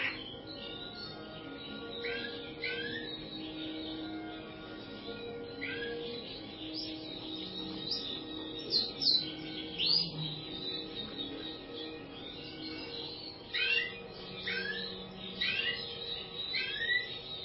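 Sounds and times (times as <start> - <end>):
bird song with high chirps, down-slurred whistles and rattled trills: 0.0 - 17.4.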